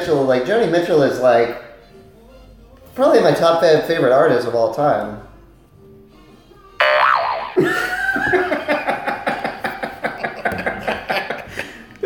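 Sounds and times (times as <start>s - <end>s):
speech: 0.0s - 1.7s, 3.0s - 5.3s
springy boing sound effect: 6.8s - 8.0s
person chuckling: 7.6s - 12.0s.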